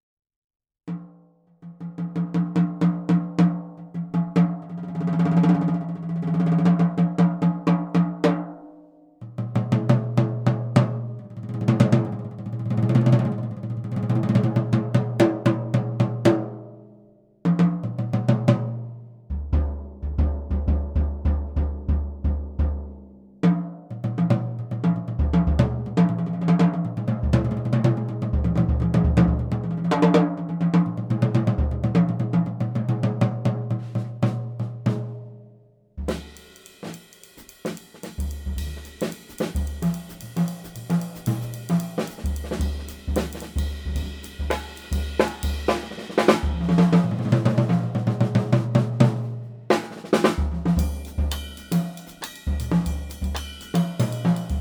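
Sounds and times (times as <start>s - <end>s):
Craviotto ash drums 12 14 18 inch: 0.9s - 8.6s, 9.2s - 16.7s, 17.5s - 35.3s, 36.0s - 54.5s.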